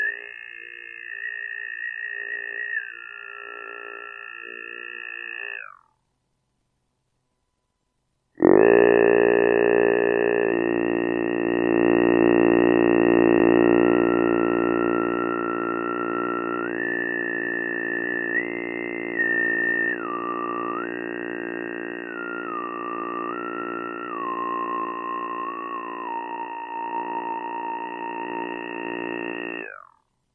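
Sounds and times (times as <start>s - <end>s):
bass: 8.4s - 29.9s.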